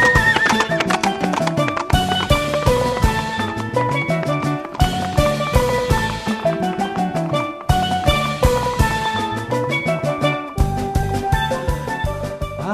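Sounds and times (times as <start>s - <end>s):
horse whinnying: 0.0s - 3.7s
hooves clattering: 0.0s - 12.6s.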